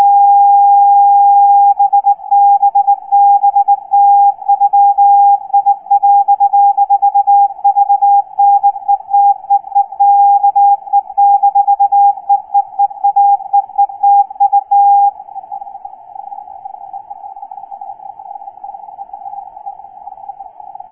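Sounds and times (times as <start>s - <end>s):
CW morse code beacon: 0.0s - 15.1s.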